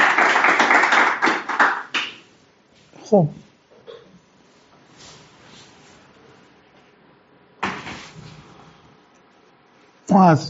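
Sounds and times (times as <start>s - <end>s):
hands clapping for a speaker at an association meeting: 0.0s - 2.3s
speech: 3.1s - 3.5s, 10.2s - 10.4s.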